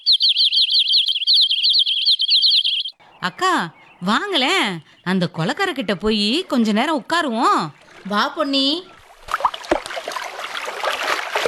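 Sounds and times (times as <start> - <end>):
birds singing in a tree: 0.0 - 10.6
speech: 3.2 - 8.9.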